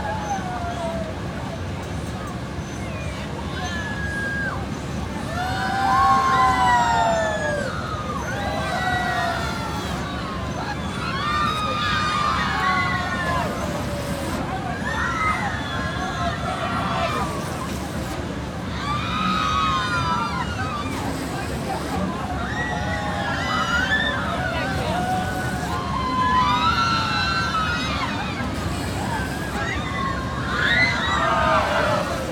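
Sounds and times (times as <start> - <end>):
exterior fairground ambience with people: 0.0 - 32.2.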